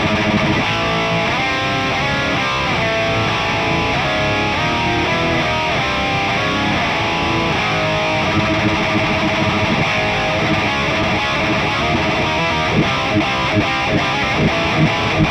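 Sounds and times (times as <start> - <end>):
electric guitar effect through a profiling amplifier: 0.0 - 15.3.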